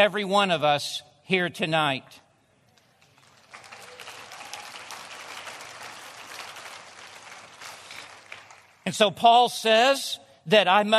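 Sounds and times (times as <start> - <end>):
speech: 0.0 - 2.2, 8.8 - 10.9
audience clapping: 2.7 - 8.9.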